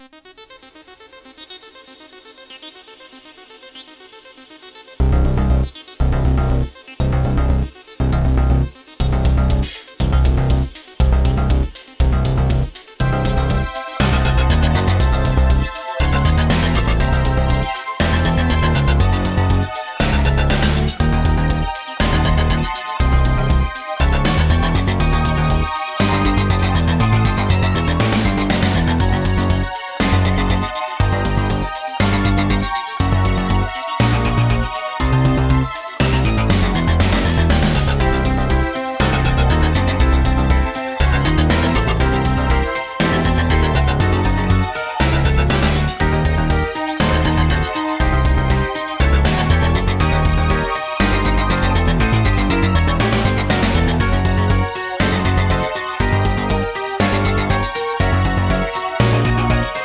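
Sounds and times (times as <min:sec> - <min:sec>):
music: 0:00.0 - 0:59.8.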